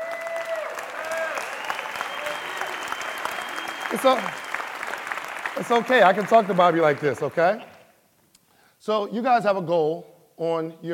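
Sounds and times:
audience clapping: 0.0s - 7.9s
speech: 3.9s - 4.4s, 5.6s - 7.7s, 8.8s - 10.9s.

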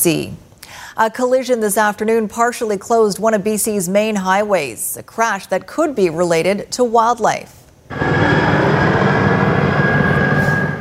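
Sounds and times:
speech: 0.0s - 0.4s, 1.0s - 8.6s
air ambulance aircraft flying: 7.9s - 10.7s.

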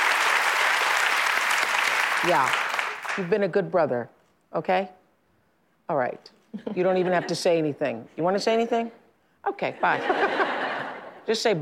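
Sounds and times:
studio audience applause: 0.0s - 3.3s
speech: 2.2s - 5.0s, 5.9s - 10.4s, 11.2s - 11.6s
laughter: 9.8s - 11.2s.

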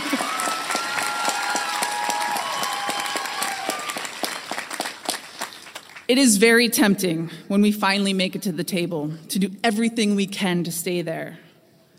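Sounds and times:
audience applause: 0.0s - 6.1s
speech: 6.1s - 11.4s.

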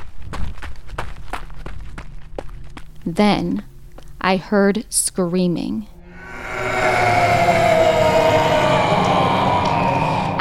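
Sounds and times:
quick running footsteps on a path: 0.0s - 4.2s
speech: 3.1s - 5.9s
low rumble: 5.9s - 10.3s.

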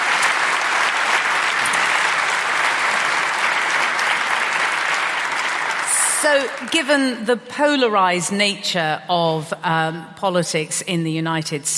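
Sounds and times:
audience applause welcoming guests onto the platform: 0.0s - 6.8s
speech: 6.2s - 11.7s.

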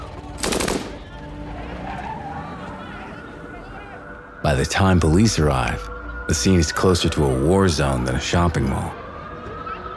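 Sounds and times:
submachine gun firing bursts at passersby: 0.4s - 1.2s
speech: 4.4s - 9.0s.

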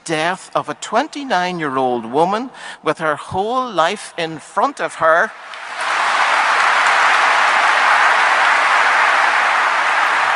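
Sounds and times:
speech: 0.1s - 5.6s
applause from mourners giving a standing ovation at a funeral: 5.4s - 10.3s.

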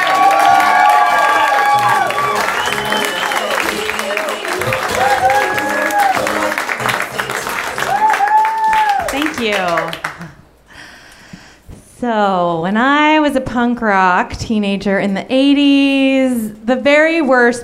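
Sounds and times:
audience applause: 0.0s - 10.3s
speech: 12.0s - 17.6s.

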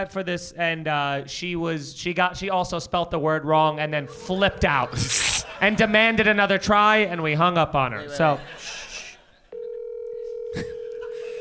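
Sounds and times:
speech: 0.0s - 8.9s
laughter: 4.1s - 9.5s, 10.5s - 11.3s
low steady phone tone: 9.5s - 11.3s.

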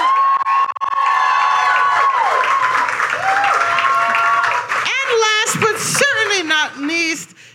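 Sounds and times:
crowd cheering and whooping: 0.0s - 4.9s
audience applause: 0.0s - 7.0s.

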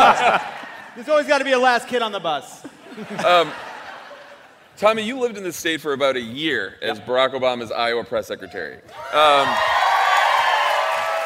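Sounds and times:
laughter: 0.0s - 1.0s, 2.5s - 4.8s
speech: 0.3s - 3.7s, 4.8s - 9.8s
audience applause and cheering: 9.0s - 11.2s.

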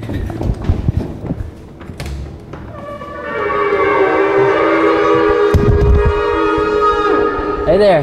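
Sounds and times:
low rumbling and shuffling noise: 0.0s - 6.4s
shofar ram's horn blast: 3.1s - 7.8s.

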